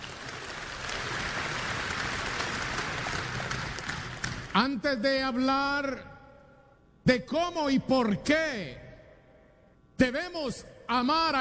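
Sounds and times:
crowd applause: 0.0 - 4.5
speech: 4.6 - 6.1, 7.1 - 8.8, 10.0 - 11.3.

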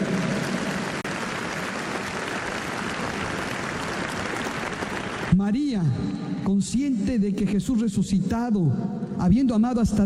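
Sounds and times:
large crowd applauding: 0.0 - 5.5
speech: 5.4 - 10.0.

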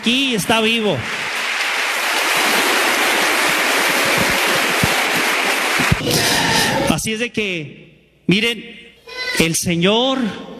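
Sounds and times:
speech: 0.0 - 1.2, 7.0 - 10.5
loud crowd applause: 0.0 - 6.9.

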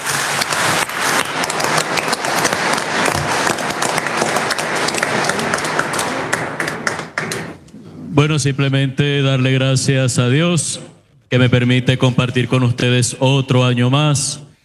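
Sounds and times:
audience applauding: 0.0 - 7.6
speech: 8.2 - 14.5.

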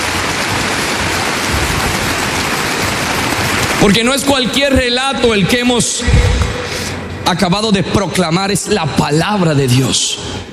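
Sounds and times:
audience applause: 0.0 - 4.8
speech: 3.8 - 10.5.

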